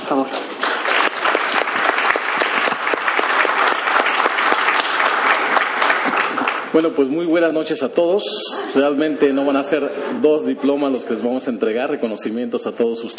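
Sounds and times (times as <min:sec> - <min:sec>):
speech: 0:00.1 - 0:00.5, 0:06.8 - 0:13.1
audience applause: 0:00.1 - 0:06.8.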